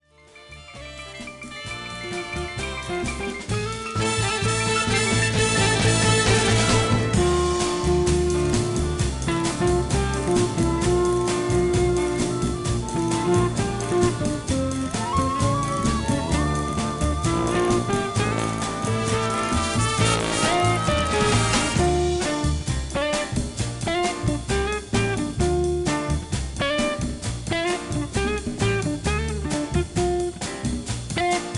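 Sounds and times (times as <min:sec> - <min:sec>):
jazz music: 0:00.0 - 0:31.5.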